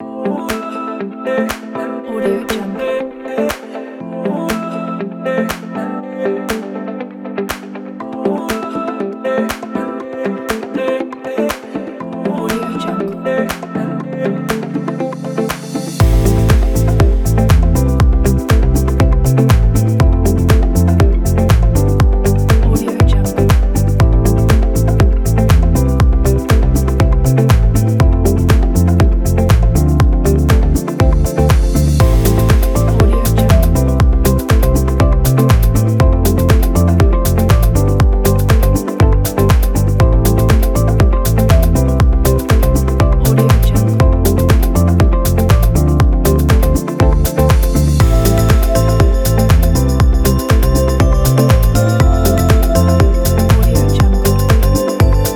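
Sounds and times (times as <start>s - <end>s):
luxury chill music: 0.0s - 55.3s.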